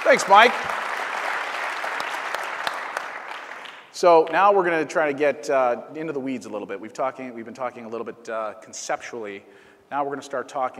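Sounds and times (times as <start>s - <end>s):
audience applause greeting a speaker: 0.0s - 3.9s
speech: 0.1s - 0.8s, 4.0s - 10.7s.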